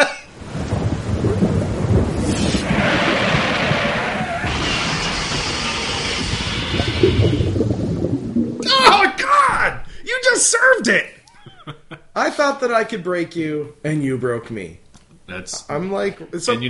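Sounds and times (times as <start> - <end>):
thunderstorm: 0.3 - 8.8
underwater effects: 0.4 - 10.0
car crash: 1.4 - 7.6
electricity sound: 2.1 - 8.6
speech: 10.9 - 11.1, 12.4 - 16.6
laughter: 11.3 - 12.2.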